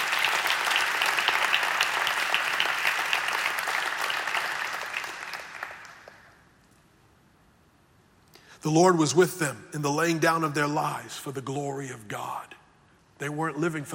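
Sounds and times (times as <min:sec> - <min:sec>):
audience clapping: 0:00.0 - 0:06.5
speech: 0:08.6 - 0:12.6, 0:13.2 - 0:13.9.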